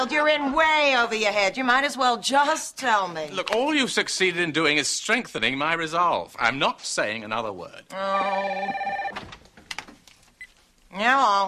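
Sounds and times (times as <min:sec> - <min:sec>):
speech: 0:00.0 - 0:09.4, 0:10.9 - 0:11.4
telephone ringing in a bright trilling tone: 0:08.2 - 0:09.2.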